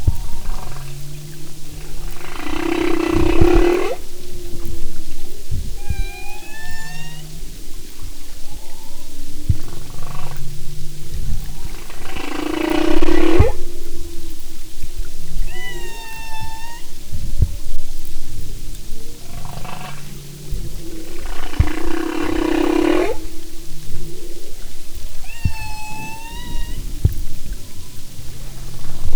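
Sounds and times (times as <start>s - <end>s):
humpback whale song: 0.0s - 29.1s.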